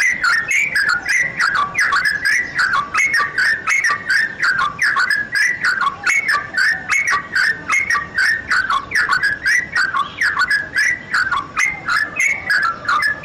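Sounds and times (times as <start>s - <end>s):
bird song of clicky whistles: 0.0s - 13.2s.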